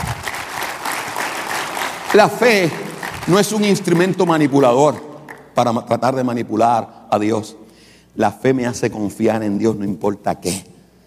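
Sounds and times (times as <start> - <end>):
audience applause: 0.0 - 5.6
speech: 2.1 - 7.6, 8.2 - 10.7.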